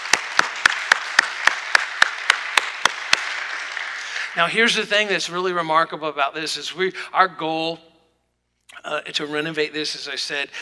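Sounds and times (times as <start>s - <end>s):
audience clapping in rhythmic unison: 0.0s - 4.8s
scattered applause: 0.0s - 4.8s
speech: 4.4s - 7.9s, 8.9s - 10.6s.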